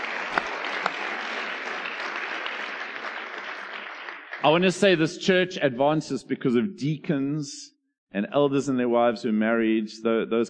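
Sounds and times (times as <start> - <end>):
round of applause: 0.0 - 5.0
speech: 4.4 - 10.4.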